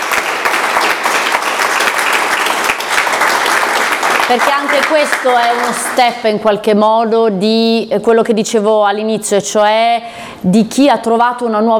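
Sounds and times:
audience applause: 0.0s - 6.1s
speech: 4.3s - 11.7s.

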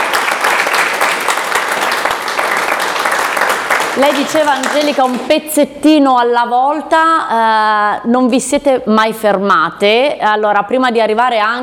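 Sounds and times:
audience applause: 0.0s - 5.3s
speech: 4.0s - 11.6s.

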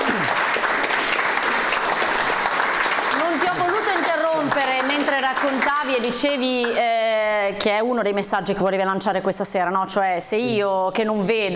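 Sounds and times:
audience applause: 0.0s - 6.8s
speech: 4.5s - 11.5s.

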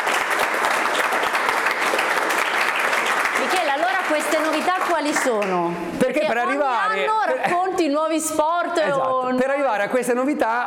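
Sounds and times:
crowd applause: 0.0s - 5.6s
speech: 4.5s - 10.6s.

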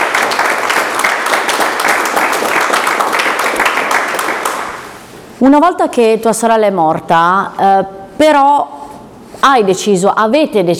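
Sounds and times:
applause: 0.0s - 5.0s
speech: 5.4s - 8.8s, 9.4s - 10.7s.

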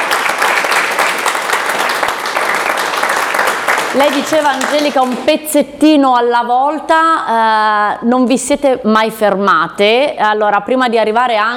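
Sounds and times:
audience applause: 0.0s - 5.3s
speech: 4.0s - 11.5s.

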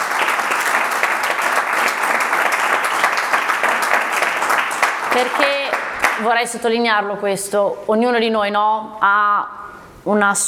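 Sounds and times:
audience applause: 0.0s - 6.4s
speech: 5.2s - 10.4s.

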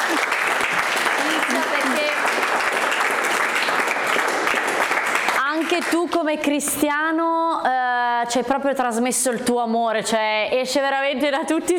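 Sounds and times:
applause: 0.0s - 6.3s
speech: 5.8s - 11.7s.

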